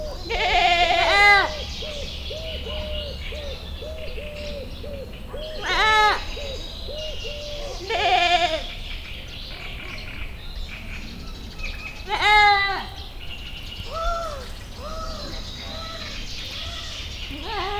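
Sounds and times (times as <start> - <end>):
domestic goat bleating: 0.2 - 1.6, 5.6 - 6.3, 7.8 - 8.7, 12.1 - 12.9, 17.3 - 17.7.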